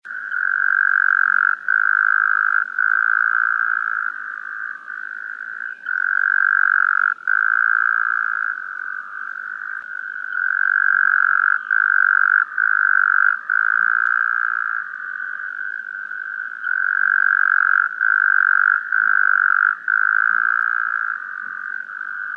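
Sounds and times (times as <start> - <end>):
Taipei tree frog trilling: 0.0 - 22.3.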